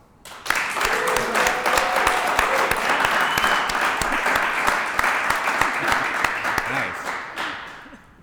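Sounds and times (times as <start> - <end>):
crowd applause: 0.2 - 8.2
cheers and voices: 0.8 - 3.8
laughter: 0.9 - 8.2.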